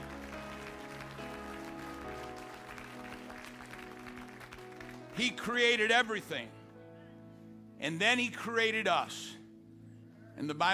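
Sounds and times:
audience clapping: 0.0 - 5.8
speech: 5.2 - 6.6, 7.8 - 9.4, 10.4 - 10.7.

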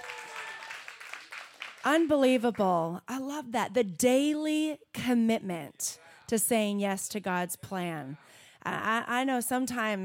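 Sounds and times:
audience clapping: 0.0 - 2.2
speech: 1.8 - 10.0.

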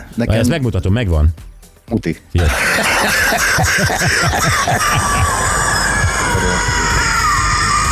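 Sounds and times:
speech: 0.2 - 5.6, 6.4 - 6.9
gurgling lung-clearing cough: 2.4 - 5.6
laughter: 2.4 - 7.8.

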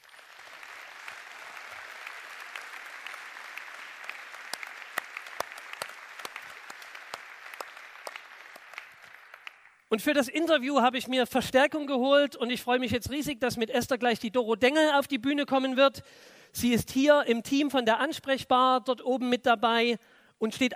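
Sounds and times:
audience applause: 0.0 - 9.8
speech: 9.9 - 20.7.

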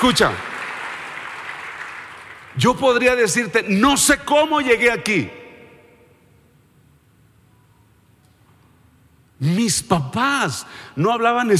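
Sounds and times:
speech: 0.0 - 0.5, 2.6 - 5.4, 9.4 - 11.5
audience applause: 0.0 - 3.1.

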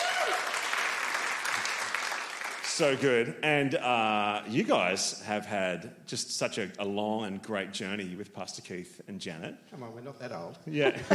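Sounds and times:
audience applause welcoming a couple onto a stage: 0.0 - 3.1
speech: 2.8 - 11.1.

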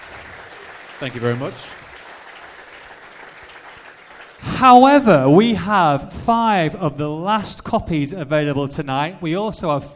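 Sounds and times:
audience applause: 0.0 - 4.8
speech: 1.0 - 1.8, 4.6 - 9.9.

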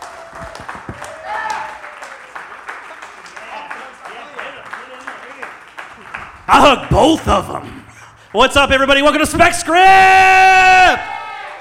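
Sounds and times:
scattered cheers: 0.0 - 5.1, 9.7 - 11.5
audience clapping for a guest welcomed onto the stage at a live show: 0.0 - 9.6
speech: 6.5 - 7.8, 8.4 - 11.1.

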